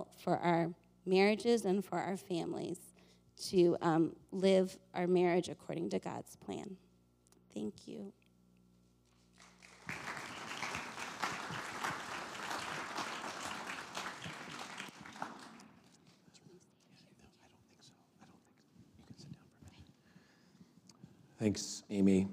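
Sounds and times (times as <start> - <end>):
speech: 0.0 - 6.8, 7.6 - 8.2, 21.4 - 22.3
audience applause: 9.4 - 15.8.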